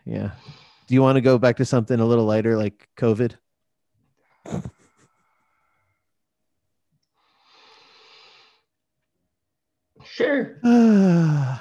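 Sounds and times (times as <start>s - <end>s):
speech: 0.1s - 3.4s, 4.4s - 4.8s, 10.0s - 11.5s
person yawning: 10.6s - 11.5s.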